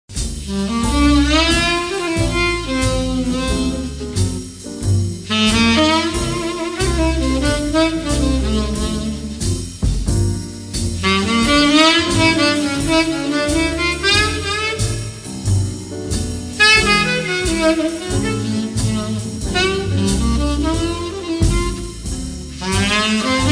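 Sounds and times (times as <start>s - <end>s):
jazz rhythm: 0.1s - 23.5s.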